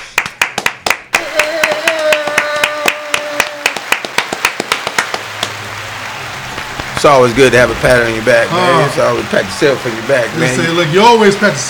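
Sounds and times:
hand claps: 0.0 - 5.6, 6.5 - 7.1
high vocal whoop: 1.2 - 3.9
speech: 7.0 - 11.6.

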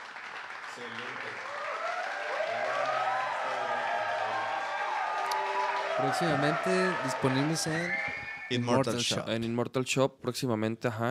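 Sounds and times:
audience applause: 0.0 - 8.7
speech: 0.8 - 1.6, 6.0 - 11.0.

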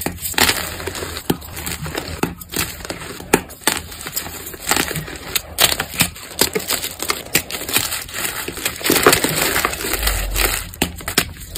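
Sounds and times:
powder crunching: 0.0 - 11.5.

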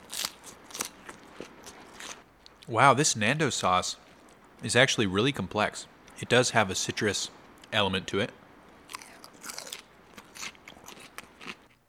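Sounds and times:
crunchy chewing of salad: 0.0 - 2.7, 8.9 - 11.8
hiss: 0.0 - 11.8
speech: 2.7 - 4.0, 4.6 - 8.4.

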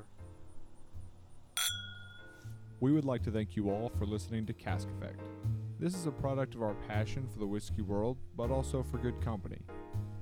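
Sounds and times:
whiskey glasses clinking: 1.6 - 2.4
speech: 2.8 - 9.8.

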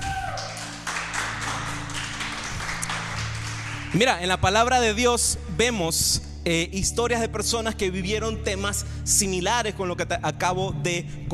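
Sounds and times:
crowd applauding: 0.0 - 4.2
speech: 3.9 - 11.3.

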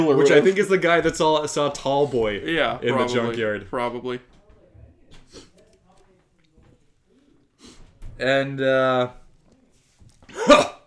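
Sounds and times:
speech: 0.0 - 4.4, 8.2 - 9.2
cough: 10.3 - 10.8.

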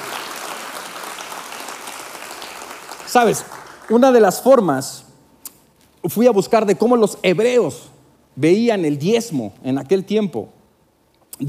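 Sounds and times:
church congregation clapping during a sermon: 0.0 - 4.6
speech: 3.1 - 5.1, 6.0 - 10.6.

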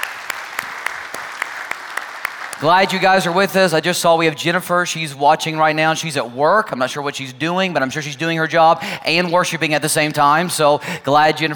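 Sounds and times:
audience clapping at a worship service: 0.0 - 3.4
speech: 2.6 - 11.5.

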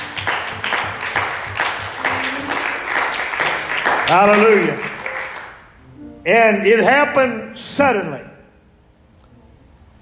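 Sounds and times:
audience hand clapping: 0.0 - 5.8
speech: 4.1 - 4.9, 6.3 - 8.3.

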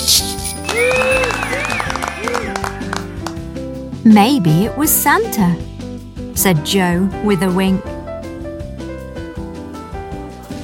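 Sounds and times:
bells jingling: 0.0 - 2.3
crowd cheering and clapping: 0.6 - 3.6
speech: 4.1 - 5.7, 6.4 - 7.9.

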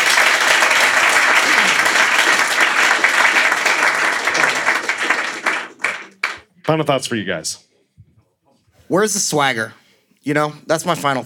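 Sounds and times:
crowd applauding: 0.0 - 6.5
speech: 6.7 - 7.7, 8.9 - 11.2.

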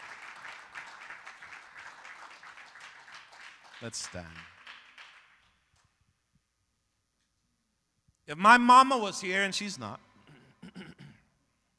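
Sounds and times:
audience clapping hands: 0.0 - 6.0
speech: 3.8 - 4.5, 8.3 - 10.1.

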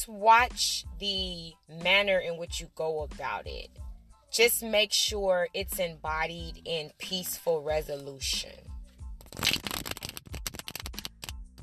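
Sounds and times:
speech: 0.0 - 8.7
deck of cards shuffling: 9.2 - 11.6.

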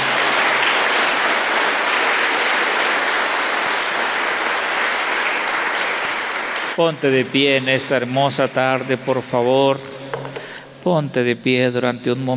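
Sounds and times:
loud audience applause: 0.0 - 6.8
speech: 6.8 - 10.0, 10.8 - 12.3.

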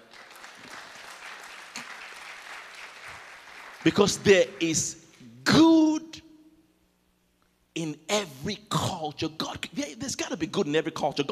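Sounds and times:
audience applause: 0.0 - 4.6
speech: 3.8 - 5.0, 8.4 - 9.7, 10.4 - 11.2.

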